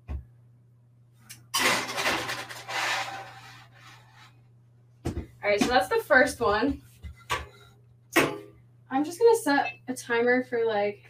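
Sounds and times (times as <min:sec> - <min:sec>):
steady low appliance hum: 0:00.0 - 0:11.0
metal tray of taquitos sliding into an oven: 0:02.0 - 0:03.6
speech: 0:05.5 - 0:06.9, 0:08.9 - 0:11.0.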